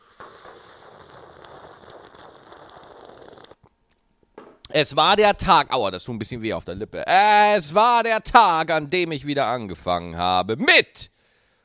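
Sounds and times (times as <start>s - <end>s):
dramatic sip from a coffee cup: 0.0s - 3.7s
speech: 4.7s - 11.2s.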